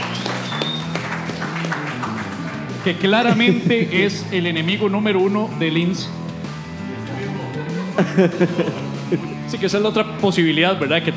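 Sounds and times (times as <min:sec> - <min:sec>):
audience applause for a guest in a comedy talk show: 0:00.0 - 0:02.8
speech: 0:02.8 - 0:06.2, 0:08.0 - 0:11.1
laughter: 0:03.1 - 0:04.2, 0:07.0 - 0:09.5.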